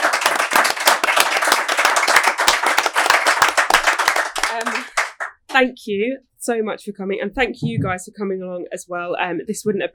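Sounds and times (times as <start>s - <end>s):
audience applause: 0.0s - 5.4s
speech: 5.5s - 9.9s.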